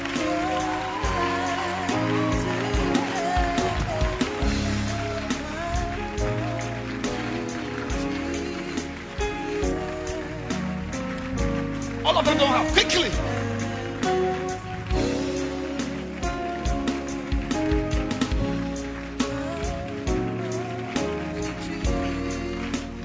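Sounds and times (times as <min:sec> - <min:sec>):
audience clapping: 0:00.0 - 0:23.0.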